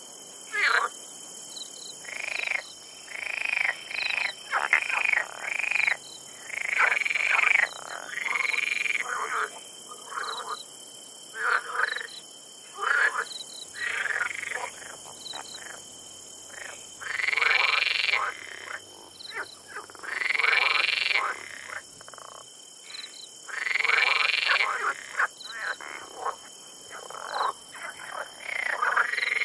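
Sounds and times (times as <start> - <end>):
Rana arboricola frogs croaking: 0.0 - 29.4.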